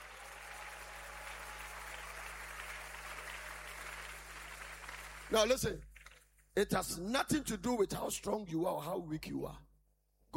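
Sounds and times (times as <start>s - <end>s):
audience clapping and applauding: 0.0s - 6.6s
speech: 5.3s - 5.9s, 6.6s - 9.6s.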